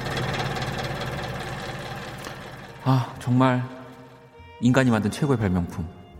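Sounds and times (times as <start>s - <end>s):
electric fan running: 0.0s - 4.6s
speech: 2.8s - 3.8s, 4.6s - 6.0s.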